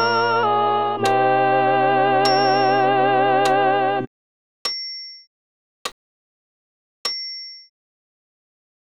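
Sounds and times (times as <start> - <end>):
alto voice with accompaniment: 0.0 - 4.1.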